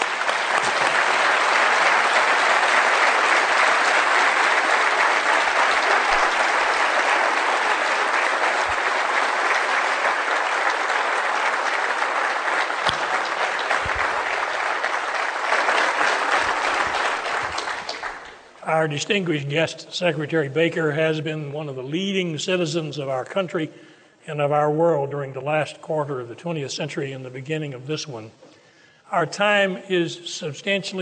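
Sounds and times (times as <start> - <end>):
audience applause: 0.0 - 18.5
speech: 18.8 - 28.4, 29.1 - 31.0.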